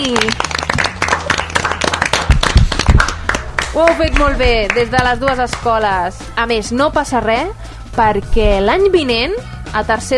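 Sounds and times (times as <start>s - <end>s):
loud applause: 0.0s - 4.4s
speech: 3.8s - 10.1s.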